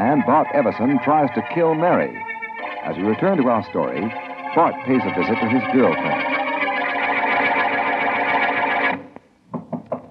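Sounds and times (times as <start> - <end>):
dense droning passage: 0.0 - 9.0
speech: 0.1 - 6.4.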